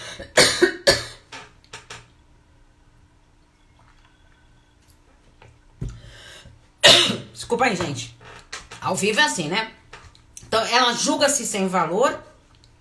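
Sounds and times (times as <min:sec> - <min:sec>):
person coughing after choking during a live talk: 0:00.0 - 0:01.3, 0:06.8 - 0:07.3
speech: 0:00.2 - 0:00.5, 0:07.5 - 0:08.2, 0:08.8 - 0:09.8, 0:10.5 - 0:12.3.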